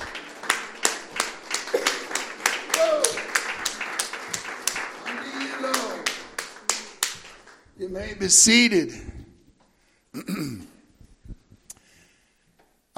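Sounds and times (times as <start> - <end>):
audience clapping hands: 0.0 - 8.4
speech: 7.9 - 9.1.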